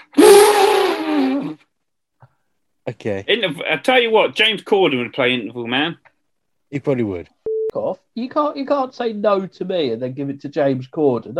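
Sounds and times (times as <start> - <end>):
man imitating an elephant trumpeting: 0.0 - 1.6
speech: 2.9 - 6.1, 6.7 - 11.3.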